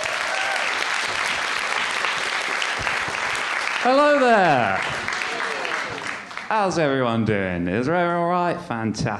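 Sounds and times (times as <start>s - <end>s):
audience applause: 0.0s - 7.0s
speech: 3.8s - 5.1s, 6.5s - 9.1s.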